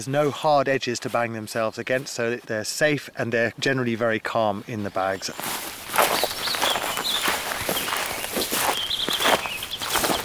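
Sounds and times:
speech: 0:00.0 - 0:05.7
footsteps walking up to the table: 0:00.0 - 0:10.2
faint high bird chirps: 0:06.1 - 0:10.2.

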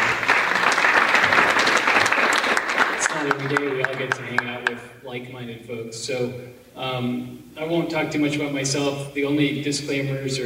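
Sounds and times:
audience round of applause: 0:00.0 - 0:04.7
speech: 0:03.2 - 0:10.4.

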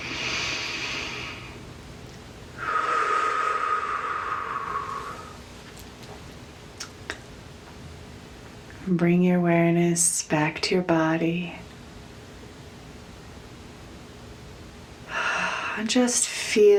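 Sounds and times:
deep breath during a guided breathing exercise: 0:00.0 - 0:01.6, 0:02.6 - 0:05.4, 0:15.1 - 0:15.8
speech: 0:08.9 - 0:11.6, 0:15.8 - 0:16.7.

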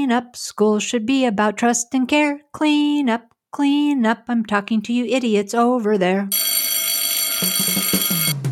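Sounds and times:
speech: 0:00.0 - 0:06.7, 0:07.4 - 0:07.9
electric school dismissal bell ringing: 0:06.3 - 0:08.4.

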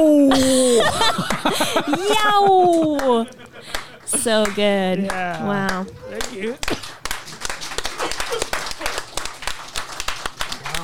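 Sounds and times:
speech: 0:00.0 - 0:00.5, 0:01.2 - 0:06.9
laughter: 0:00.3 - 0:06.7, 0:07.9 - 0:09.1
slow clap from the audience: 0:02.7 - 0:10.8.

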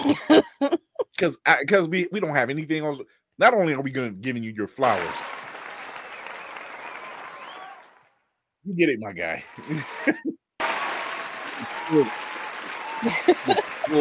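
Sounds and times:
speech: 0:00.0 - 0:05.4, 0:08.7 - 0:10.4, 0:11.6 - 0:12.2, 0:13.0 - 0:13.9
applause: 0:04.8 - 0:08.1, 0:10.6 - 0:13.9
laughter: 0:09.4 - 0:13.9.

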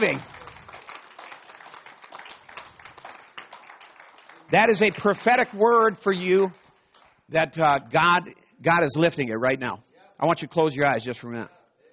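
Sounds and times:
speech: 0:00.0 - 0:00.3, 0:04.5 - 0:06.6, 0:07.3 - 0:11.6
audience clapping: 0:00.0 - 0:08.0.

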